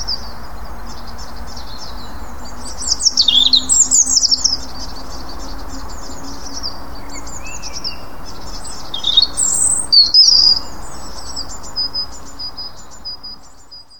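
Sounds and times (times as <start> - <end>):
low hum: 0.0 - 9.0
European robin singing: 0.0 - 13.9.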